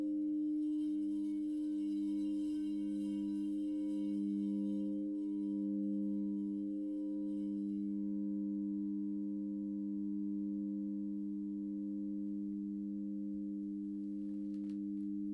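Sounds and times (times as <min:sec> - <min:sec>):
low G and D sharp crystal bowl tone: 0:00.0 - 0:15.3.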